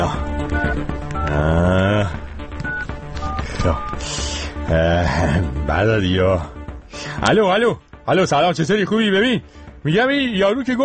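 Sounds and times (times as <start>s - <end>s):
telephone keypad tones of a number being dialed: 0.4s - 1.4s, 2.5s - 4.0s
speech: 3.6s - 6.6s, 7.2s - 10.8s.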